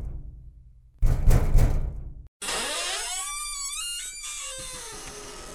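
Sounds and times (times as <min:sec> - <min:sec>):
long wavering creak: 0:01.1 - 0:05.5.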